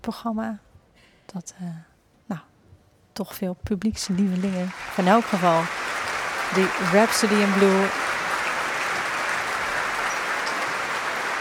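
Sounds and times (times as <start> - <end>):
speech: 0.0 - 0.7, 1.3 - 2.5, 3.2 - 8.1
concert hall audience applauding conductor's entrance: 4.2 - 11.3.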